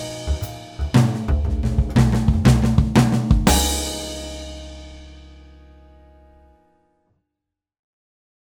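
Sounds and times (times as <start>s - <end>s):
swing drum fills: 0.0s - 5.6s.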